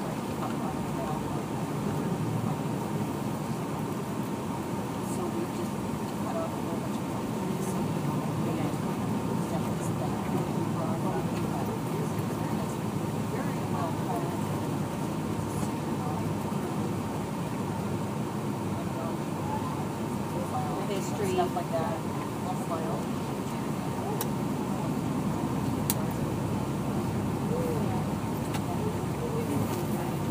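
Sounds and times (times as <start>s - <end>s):
bus noise: 0.0s - 30.2s.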